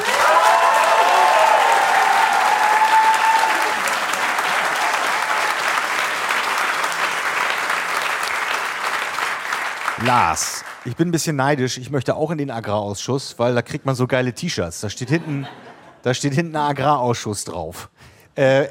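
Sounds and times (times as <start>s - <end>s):
audience applause: 0.0s - 10.9s
speech: 10.1s - 18.6s
laughter: 15.0s - 16.1s.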